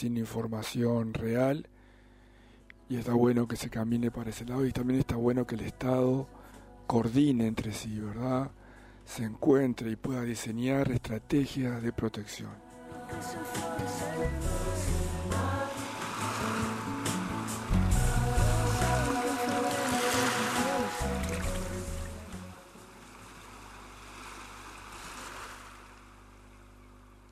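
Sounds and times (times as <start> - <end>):
speech: 0.0 - 1.8, 2.9 - 14.7
sustained melodic music: 13.0 - 23.0
ocean waves: 14.7 - 26.6.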